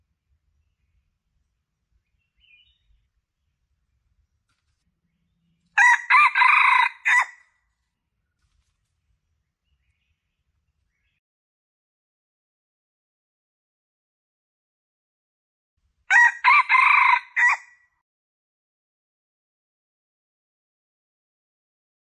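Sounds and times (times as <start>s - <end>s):
Red junglefowl crowing: 5.8s - 7.4s, 16.1s - 17.8s.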